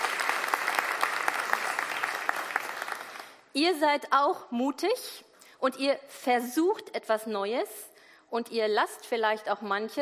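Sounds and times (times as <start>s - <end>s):
audience applause: 0.0s - 3.4s
speech: 3.6s - 9.9s.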